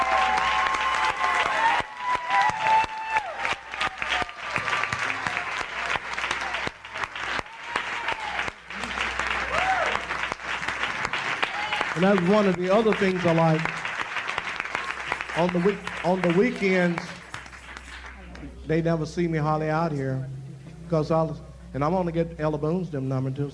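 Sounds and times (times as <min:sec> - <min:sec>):
audience hand clapping: 0:00.0 - 0:18.6
speech: 0:12.0 - 0:13.8, 0:15.4 - 0:17.1, 0:18.7 - 0:23.5.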